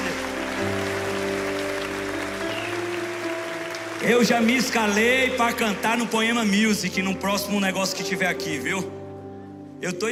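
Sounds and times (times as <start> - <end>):
applause: 0.0 - 7.5
speech: 4.0 - 9.0, 9.8 - 10.1.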